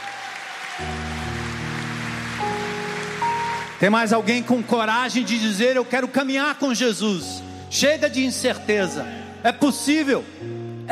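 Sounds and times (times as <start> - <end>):
audience applauding: 0.0 - 6.0
speech: 3.8 - 10.8.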